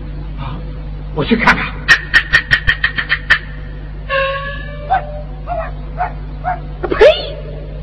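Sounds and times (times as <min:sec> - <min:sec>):
steady low hum: 0:00.0 - 0:07.8
speech: 0:01.2 - 0:01.9
stray dog yapping: 0:04.9 - 0:07.3.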